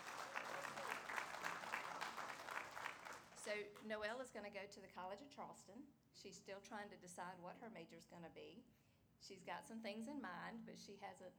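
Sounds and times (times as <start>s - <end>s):
audience applause: 0.0s - 3.5s
speech: 3.5s - 11.3s.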